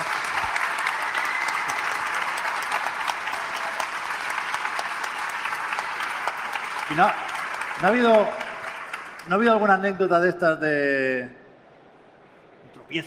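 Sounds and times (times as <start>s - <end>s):
audience applause for the Málaga Jam organisers: 0.0s - 9.7s
speech: 6.9s - 8.4s, 9.3s - 11.4s.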